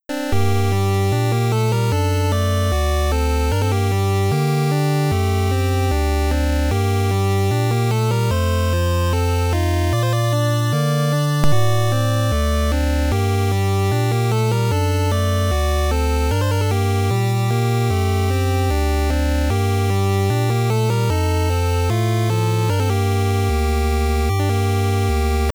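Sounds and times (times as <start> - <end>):
neutral game menu music: 0.1 - 5.2, 5.9 - 25.5.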